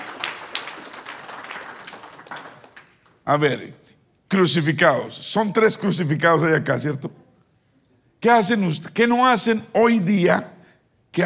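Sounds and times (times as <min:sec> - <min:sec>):
crowd applauding: 0:00.0 - 0:03.2
speech: 0:03.3 - 0:07.2, 0:08.2 - 0:10.6.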